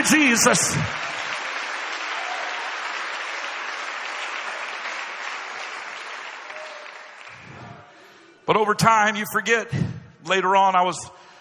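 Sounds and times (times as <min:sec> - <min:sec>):
speech: 0:00.0 - 0:01.1, 0:08.5 - 0:11.2
audience clapping: 0:00.0 - 0:08.0.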